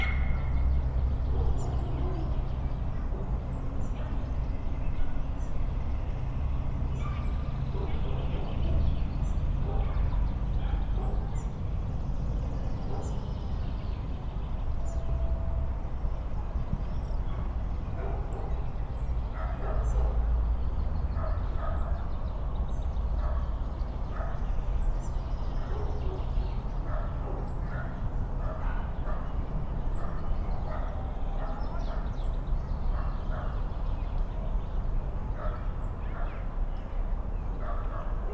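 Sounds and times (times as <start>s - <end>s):
city park ambience in Košice: 0.0s - 38.3s.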